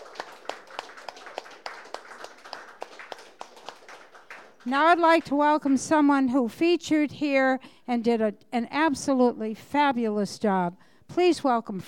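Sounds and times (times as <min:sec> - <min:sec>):
audience applause: 0:00.0 - 0:06.0
speech: 0:04.6 - 0:11.8.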